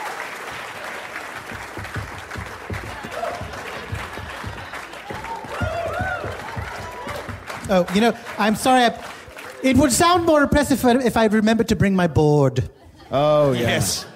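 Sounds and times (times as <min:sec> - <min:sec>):
people clapping along: 0:00.0 - 0:10.9
speech: 0:07.7 - 0:14.1
laughter: 0:12.6 - 0:14.1.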